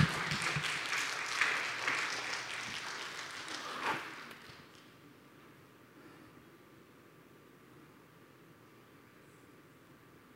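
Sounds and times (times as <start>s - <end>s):
audience clapping: 0.0s - 5.0s.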